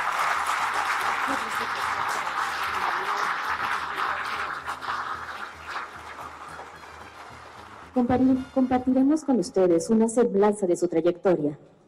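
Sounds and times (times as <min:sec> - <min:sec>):
audience applause: 0:00.0 - 0:08.0
speech: 0:01.3 - 0:01.9, 0:08.0 - 0:11.7.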